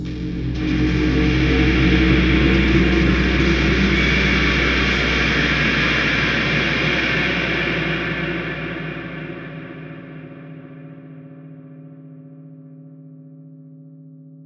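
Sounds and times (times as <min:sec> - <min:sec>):
guitar ending: 0:00.0 - 0:10.5.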